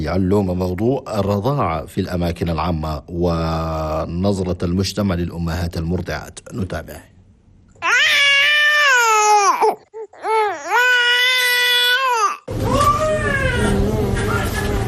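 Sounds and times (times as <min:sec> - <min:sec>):
speech: 0:00.0 - 0:07.1
infant crying to be breastfed: 0:07.8 - 0:13.9.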